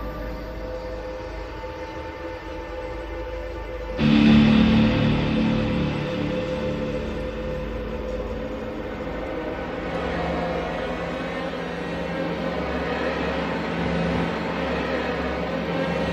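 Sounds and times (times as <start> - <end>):
synth pads: 4.0 - 16.1.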